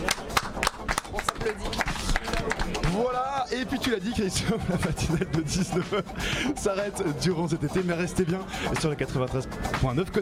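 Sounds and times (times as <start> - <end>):
hand clapping: 0.0 - 3.1
speech: 1.4 - 1.8, 3.0 - 10.1
laughter: 4.1 - 6.8.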